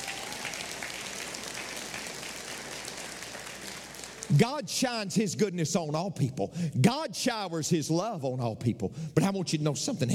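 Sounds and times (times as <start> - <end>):
audience clapping: 0.0 - 4.7
speech: 4.3 - 10.1.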